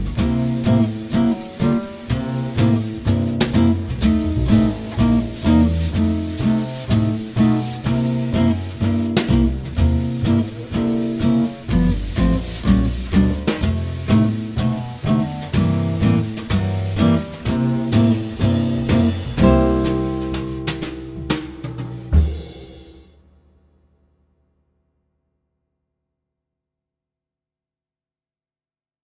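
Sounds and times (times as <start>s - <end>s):
12 bar swing blues piano in C: 0.0s - 23.0s.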